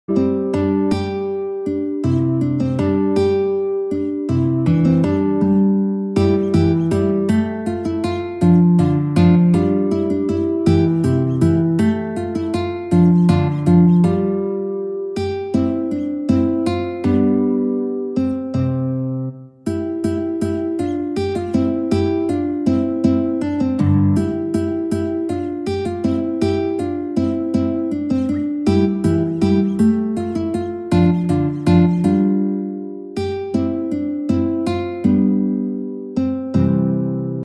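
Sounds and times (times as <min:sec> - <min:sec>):
guitar: 0:00.0 - 0:37.4.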